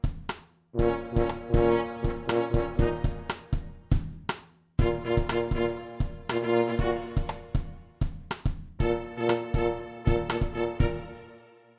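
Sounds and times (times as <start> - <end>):
drum kit: 0.0 - 11.2
trombone: 0.8 - 3.7, 4.8 - 7.7, 8.8 - 11.4
trumpet: 0.8 - 3.8, 4.8 - 7.9, 8.8 - 11.7
tuba: 0.8 - 3.8, 4.8 - 7.8, 8.8 - 11.5.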